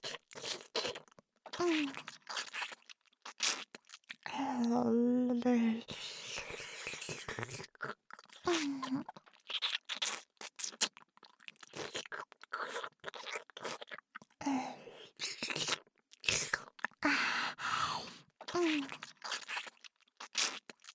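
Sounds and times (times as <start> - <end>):
oral sex sounds: 0.0 - 2.7, 3.4 - 10.1, 12.6 - 19.6.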